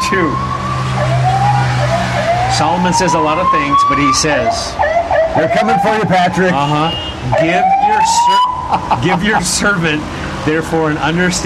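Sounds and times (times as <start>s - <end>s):
siren passing outside: 0.0s - 9.0s
speech: 0.1s - 0.5s, 2.6s - 11.4s
laughter: 8.4s - 10.0s.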